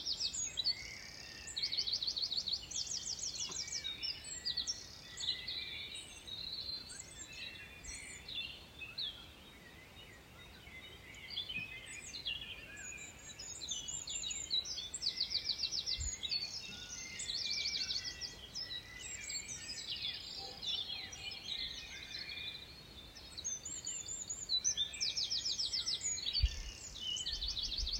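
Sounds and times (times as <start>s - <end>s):
birds singing at dawn: 0.0s - 27.9s.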